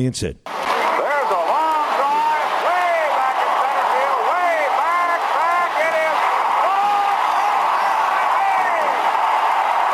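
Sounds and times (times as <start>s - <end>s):
speech: 0.0s - 0.5s
stadium crowd cheering after a catch: 0.5s - 9.9s.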